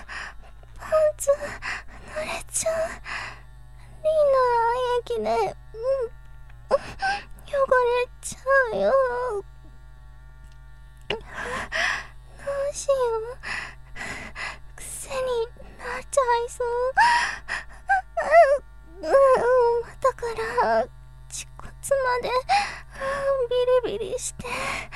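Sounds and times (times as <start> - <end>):
live performance voice only with electric massager: 0.8 - 3.0, 4.0 - 6.1, 6.7 - 9.4, 12.4 - 13.6, 14.8 - 17.0, 17.9 - 24.8.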